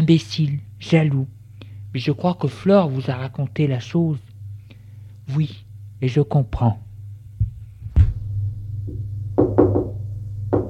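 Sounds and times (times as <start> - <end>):
speech: 0.1 - 1.4, 2.0 - 4.3, 5.3 - 6.8
knocking on a door: 8.9 - 10.6.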